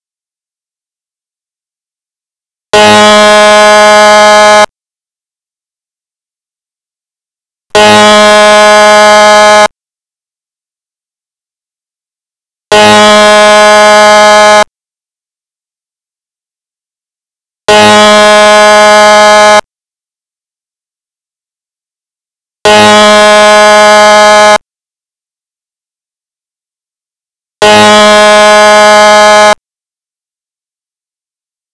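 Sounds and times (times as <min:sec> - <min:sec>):
dam break alert: 0:02.8 - 0:04.7, 0:07.8 - 0:09.7, 0:12.7 - 0:14.7, 0:17.7 - 0:19.6, 0:22.7 - 0:24.6, 0:27.6 - 0:29.6.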